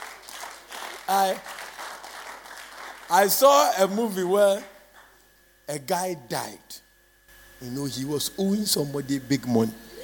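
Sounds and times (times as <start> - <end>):
audience hand clapping: 0.0 - 3.2, 4.5 - 5.2
speech: 1.1 - 1.6, 3.1 - 4.7, 5.7 - 6.8, 7.6 - 9.9.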